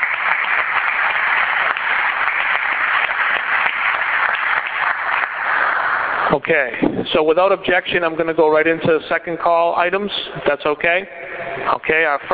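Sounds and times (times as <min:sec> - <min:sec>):
round of applause: 0:00.0 - 0:06.5
speech: 0:06.3 - 0:12.3.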